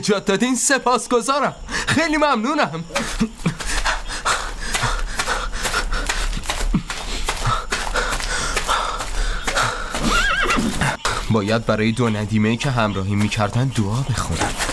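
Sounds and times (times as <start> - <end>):
speech: 0.0 - 3.7, 11.3 - 14.7
hooves clip-clopping: 3.5 - 14.7
horse whinnying and snorting: 10.0 - 11.0.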